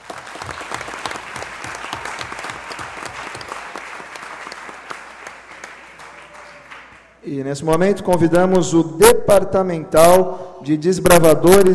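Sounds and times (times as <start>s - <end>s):
audience applauding: 0.0s - 7.2s
speech: 7.3s - 11.7s.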